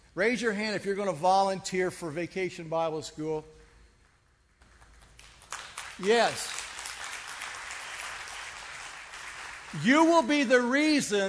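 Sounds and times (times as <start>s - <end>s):
speech: 0.2s - 3.6s, 6.0s - 6.6s, 9.7s - 11.2s
audience applauding: 4.6s - 10.3s.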